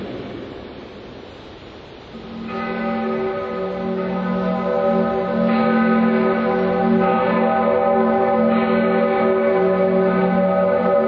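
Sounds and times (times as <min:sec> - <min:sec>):
bell ringing: 0:02.1 - 0:11.0.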